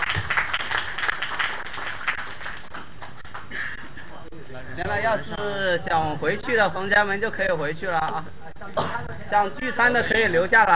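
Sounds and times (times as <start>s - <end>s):
small group clapping for themselves at the end of a gathering: 0.0s - 3.8s
speech: 4.8s - 10.7s.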